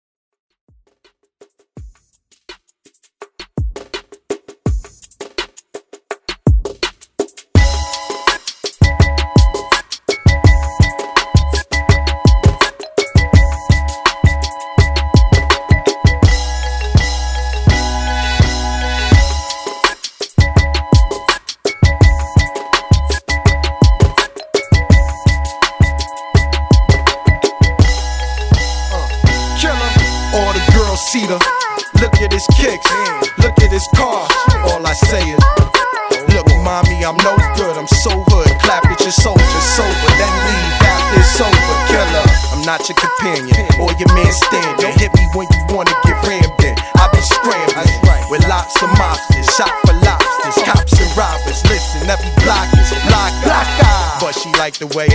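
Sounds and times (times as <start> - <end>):
retro drum beat: 0.7 - 55.1.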